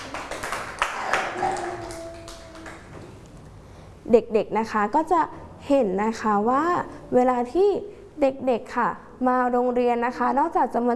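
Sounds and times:
children clapping: 0.0s - 3.2s
speech: 4.1s - 10.9s.

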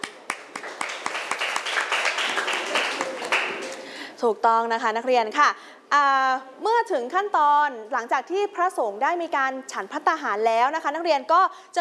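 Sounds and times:
classroom applause for a student: 0.0s - 3.9s
speech: 4.2s - 11.7s.

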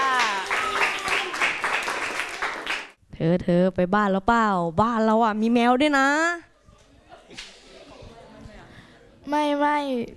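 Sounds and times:
audience applause for a performing group: 0.0s - 2.9s
speech: 3.2s - 6.5s, 9.3s - 10.1s.

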